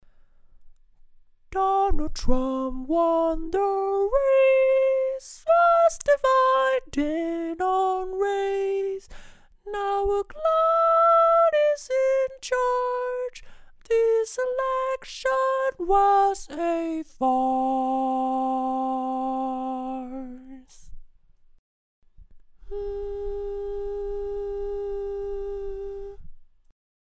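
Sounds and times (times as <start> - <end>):
barbershop tags singing: 1.5 - 20.8.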